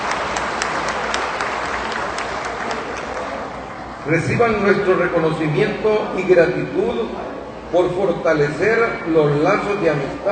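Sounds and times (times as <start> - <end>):
audience applause: 0.0 - 3.6
speech: 4.0 - 10.3.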